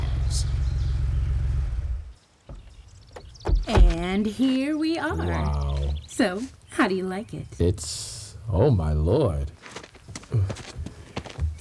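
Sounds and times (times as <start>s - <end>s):
car engine rumble driving toward a palatial estate: 0.0s - 4.4s
speech: 3.7s - 10.8s.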